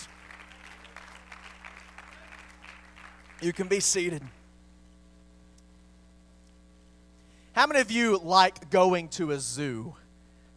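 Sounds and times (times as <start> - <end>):
audience clapping hands: 0.0 - 4.4
speech: 3.4 - 4.4, 7.6 - 10.0.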